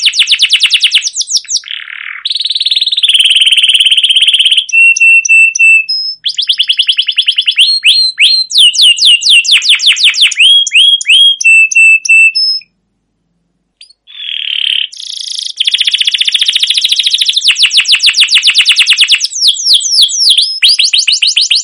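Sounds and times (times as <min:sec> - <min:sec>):
canary singing trills: 0:00.0 - 0:12.8, 0:13.8 - 0:21.6.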